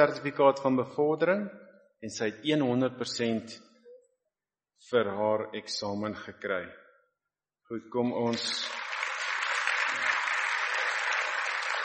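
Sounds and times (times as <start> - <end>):
speech: 0.0 - 3.7, 4.8 - 6.8, 7.7 - 8.8
crowd of people clapping hands: 8.3 - 11.8.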